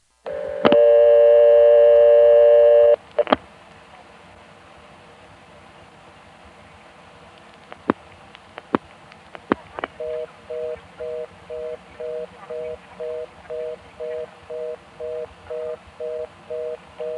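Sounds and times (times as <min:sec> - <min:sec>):
telephone reorder tone after dialing vacant code: 0:00.3 - 0:03.0, 0:10.0 - 0:17.1.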